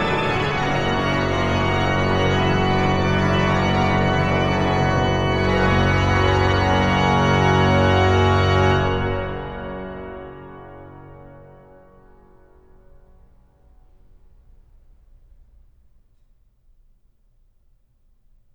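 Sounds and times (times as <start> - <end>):
organ piece: 0.0 - 12.5.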